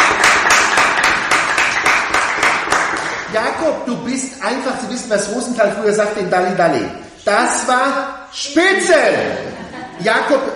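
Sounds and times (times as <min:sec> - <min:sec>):
audience applause: 0:00.0 - 0:03.3
speech: 0:03.6 - 0:10.5
laughter: 0:09.1 - 0:10.5.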